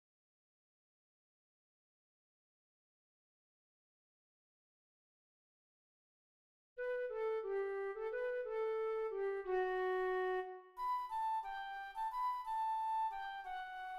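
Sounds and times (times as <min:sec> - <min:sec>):
flute: 0:06.8 - 0:13.9.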